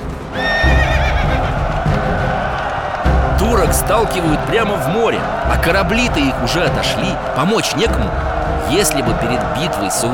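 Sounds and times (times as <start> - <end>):
rumble of galloping hoofbeats: 0.0 - 3.0
horse whinnying: 0.3 - 1.5
speech: 3.6 - 10.1.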